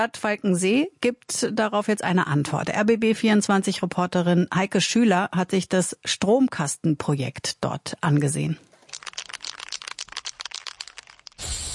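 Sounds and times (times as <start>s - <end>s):
speech: 0.0s - 8.7s
spray can being shaken and rattling: 8.7s - 11.7s
spray can spraying with a loud hiss: 9.1s - 11.7s.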